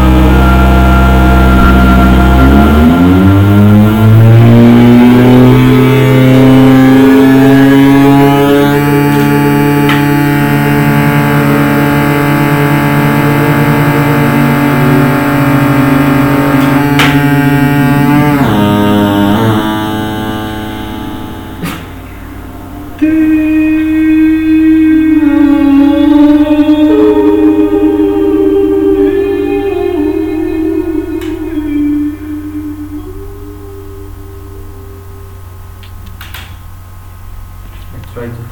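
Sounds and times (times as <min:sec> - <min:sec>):
sine tone voice: 0:00.0 - 0:35.8.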